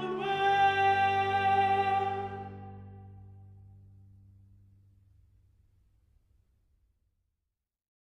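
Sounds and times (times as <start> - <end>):
triumphant pleasant melody: 0.0 - 3.4.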